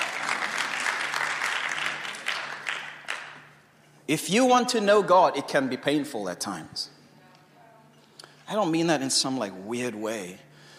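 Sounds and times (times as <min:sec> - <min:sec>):
audience applause: 0:00.0 - 0:03.5
speech: 0:04.1 - 0:07.0, 0:08.5 - 0:10.5.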